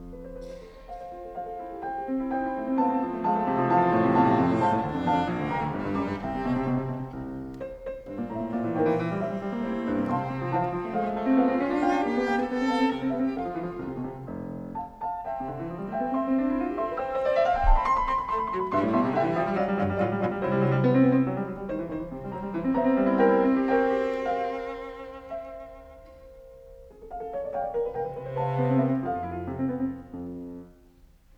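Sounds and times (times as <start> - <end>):
cello piece in F major: 0.0 - 31.2.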